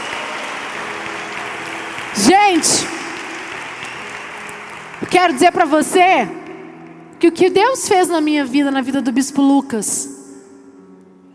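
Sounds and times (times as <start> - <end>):
audience applause: 0.0 - 7.0
speech: 2.2 - 3.0, 5.2 - 6.4, 7.2 - 10.2.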